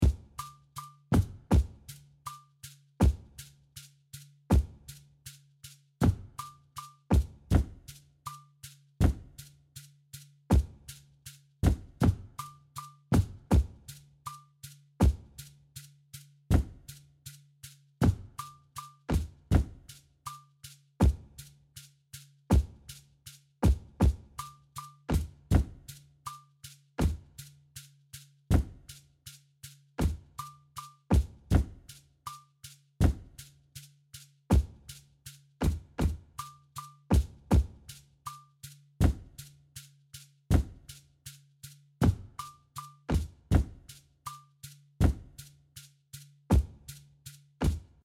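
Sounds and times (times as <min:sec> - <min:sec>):
percussion: 0:00.0 - 0:48.0.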